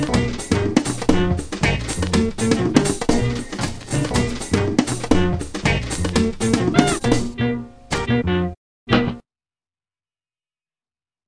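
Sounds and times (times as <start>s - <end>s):
rumba music: 0.0s - 7.5s.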